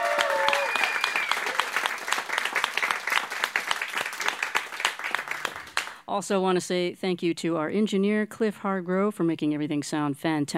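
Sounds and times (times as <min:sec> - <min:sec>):
studio audience applauding a band after a live in-studio radio performance: 0:00.0 - 0:06.0
speech: 0:06.1 - 0:10.5.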